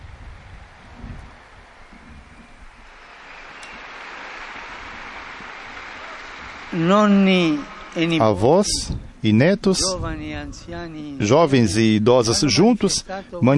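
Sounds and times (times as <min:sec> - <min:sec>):
large crowd applause: 0:00.0 - 0:08.8
speech: 0:06.8 - 0:13.5.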